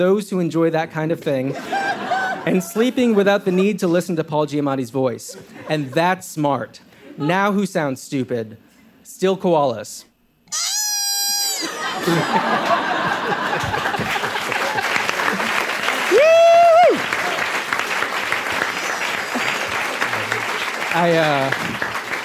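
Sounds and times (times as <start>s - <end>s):
speech: 0.0s - 10.7s, 12.0s - 14.2s, 20.9s - 21.9s
laughter: 1.4s - 3.9s, 5.3s - 6.1s, 11.4s - 15.9s, 18.5s - 21.3s
crowd whooping and cheering: 10.5s - 21.5s
crowd applauding: 11.6s - 22.2s.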